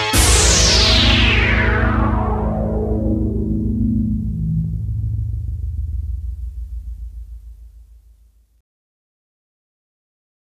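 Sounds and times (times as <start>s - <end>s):
Juno60 analog synthesizer: 0.1s - 8.3s.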